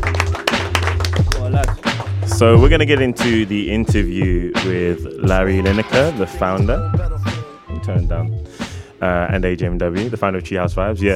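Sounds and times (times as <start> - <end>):
applause: 0.0 - 3.4
speech: 2.4 - 7.1, 7.9 - 11.1.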